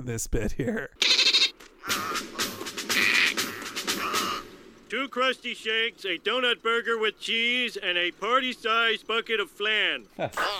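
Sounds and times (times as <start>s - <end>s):
speech: 0.0s - 2.5s, 4.9s - 10.5s
voice actor imitating a dolphin: 1.0s - 4.4s, 10.4s - 10.5s.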